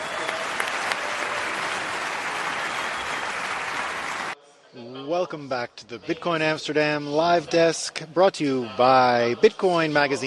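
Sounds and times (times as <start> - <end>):
audience applauding panelists at Bitcoin Amsterdam conference: 0.0 - 4.4
speech: 5.1 - 10.2.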